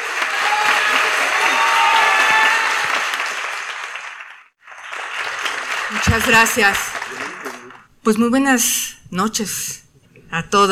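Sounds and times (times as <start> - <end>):
audience applause: 0.0 - 7.8
speech: 6.0 - 7.2, 8.0 - 10.7.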